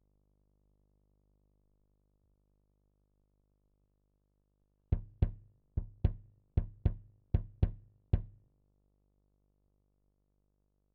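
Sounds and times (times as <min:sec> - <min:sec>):
kick drum: 0:04.9 - 0:08.4.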